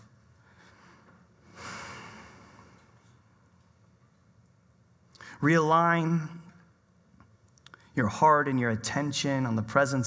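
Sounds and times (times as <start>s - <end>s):
deep breath during guided prayer in a church service: 0.4s - 3.2s
speech: 5.4s - 6.4s, 8.0s - 10.0s.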